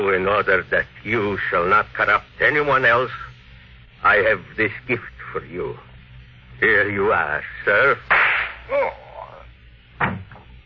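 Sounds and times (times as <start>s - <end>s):
speech: 0.0s - 3.3s, 4.0s - 5.9s, 6.6s - 9.0s
gunshot sound effect from a radio drama: 8.1s - 8.6s.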